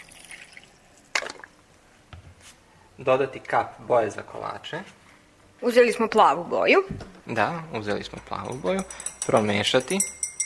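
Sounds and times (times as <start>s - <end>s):
water poured into a glass: 0.0s - 1.5s
speech: 3.0s - 5.0s, 5.6s - 10.2s.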